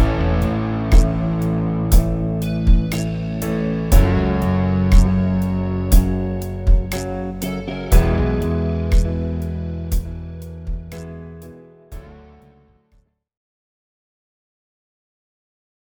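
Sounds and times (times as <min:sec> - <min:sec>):
rock chord progression in A: 0:00.0 - 0:11.1.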